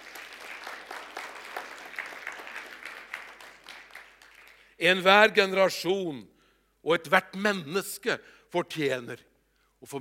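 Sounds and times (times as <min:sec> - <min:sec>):
crowd clapping: 0:00.0 - 0:04.8
speech: 0:04.8 - 0:09.9.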